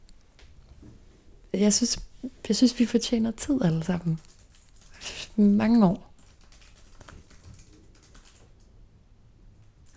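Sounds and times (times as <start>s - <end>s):
speech: 1.5s - 4.3s, 5.0s - 6.1s
typing on a keyboard: 4.0s - 8.8s.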